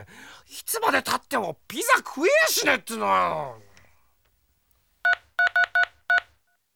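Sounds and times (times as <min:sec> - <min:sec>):
speech: 0:00.0 - 0:03.7
telephone keypad beeps: 0:05.1 - 0:06.2.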